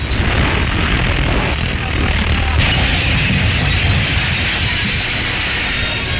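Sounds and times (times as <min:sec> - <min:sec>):
steel bridge collapsing onto ice: 0:00.0 - 0:06.1.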